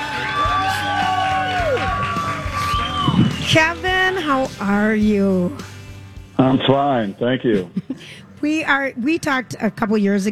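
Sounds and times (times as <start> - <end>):
crowd cheering at State Fair: 0.0 - 3.9
speech: 3.5 - 5.7, 6.4 - 10.3.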